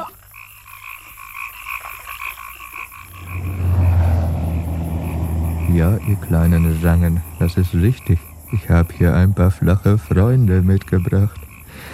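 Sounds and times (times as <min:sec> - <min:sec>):
frogs croaking: 0:00.0 - 0:11.9
loud low rumble: 0:03.0 - 0:08.5
speech: 0:05.8 - 0:11.9.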